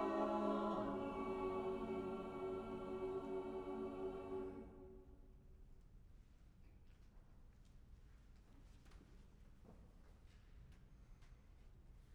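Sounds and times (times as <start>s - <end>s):
concert choir singing: 0.0s - 5.2s.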